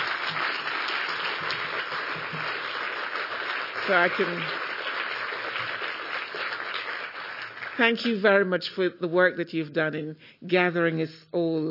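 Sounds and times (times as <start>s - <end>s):
audience applause: 0.0s - 8.1s
speech: 3.9s - 4.7s, 7.8s - 11.6s.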